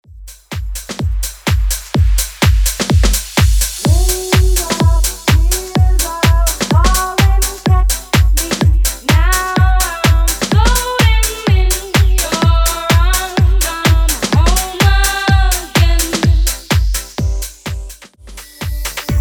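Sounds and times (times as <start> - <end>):
clean house music: 0.0 - 19.1.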